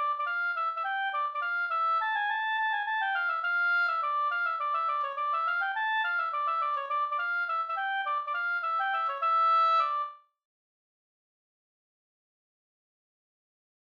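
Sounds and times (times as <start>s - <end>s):
Swedish slangpolska folk dance tune: 0.0s - 10.1s.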